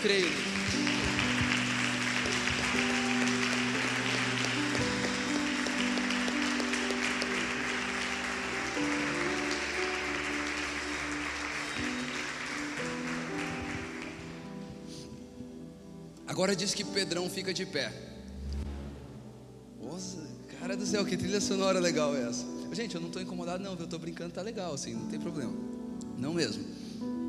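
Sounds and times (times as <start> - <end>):
speech: 0.0 - 0.7, 16.4 - 18.2, 20.8 - 27.1
audience applauding: 0.0 - 14.9.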